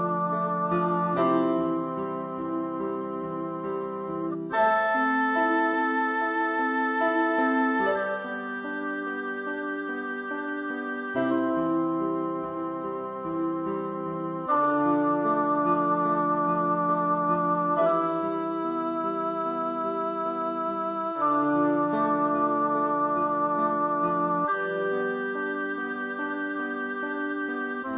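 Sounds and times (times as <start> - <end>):
oboe: 0.0 - 27.9
piano: 0.0 - 27.9.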